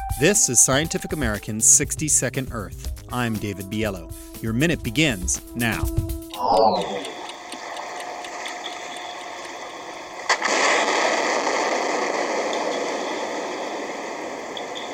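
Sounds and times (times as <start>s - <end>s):
speech: 0.2s - 7.1s
rhythmic ticking: 0.2s - 10.3s
seismic air gun blast testing for oil and gas under the seabed: 10.3s - 14.7s.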